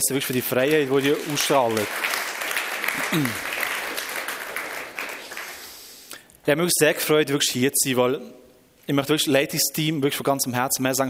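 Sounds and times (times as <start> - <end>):
speech: 0.0 - 2.2, 3.1 - 3.5, 6.4 - 11.0
crowd applauding: 0.0 - 5.9.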